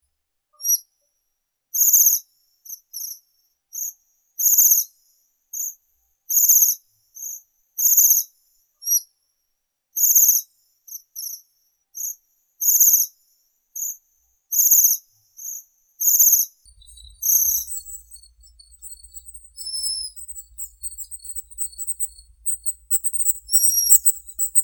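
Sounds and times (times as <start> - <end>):
Japanese waxwing Bombycilla japonica calling: 16.7 - 24.6.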